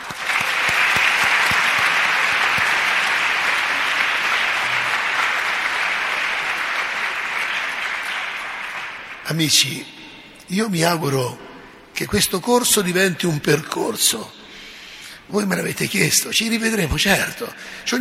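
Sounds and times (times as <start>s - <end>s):
sustained applause from a sizable audience: 0.0s - 9.3s
speech: 9.3s - 11.4s, 12.0s - 14.4s, 15.3s - 17.9s.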